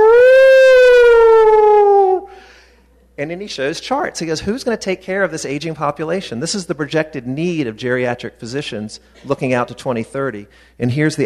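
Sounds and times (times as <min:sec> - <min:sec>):
person vocally imitating an alarm siren: 0:00.0 - 0:02.4
speech: 0:03.2 - 0:11.2.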